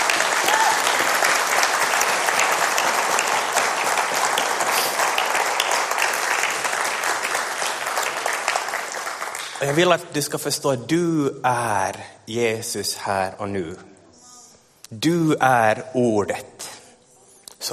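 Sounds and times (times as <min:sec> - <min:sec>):
audience applause: 0:00.0 - 0:09.9
speech: 0:09.6 - 0:13.9, 0:14.9 - 0:16.5.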